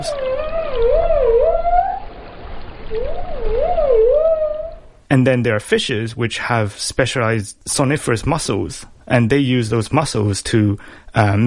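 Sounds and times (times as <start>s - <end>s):
dolphin whistles: 0.0s - 2.1s, 2.9s - 4.9s
steady watery hiss: 0.0s - 11.4s
speech: 5.1s - 11.4s.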